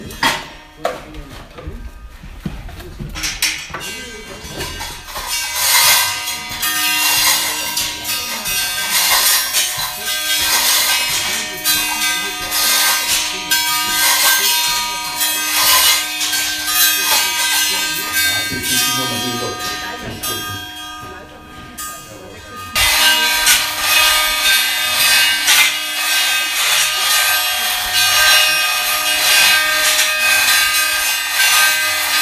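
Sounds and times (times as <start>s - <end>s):
glockenspiel: 3.8s - 32.2s.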